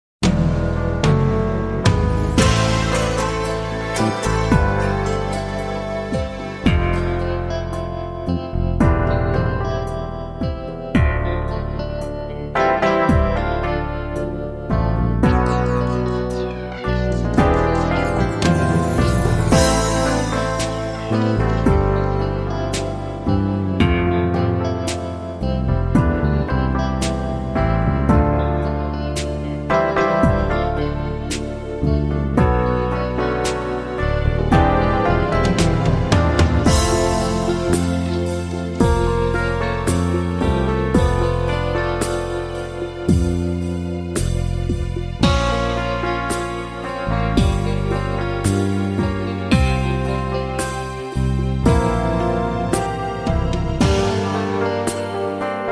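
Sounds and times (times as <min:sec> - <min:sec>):
power ballad: 0:00.2 - 0:55.7.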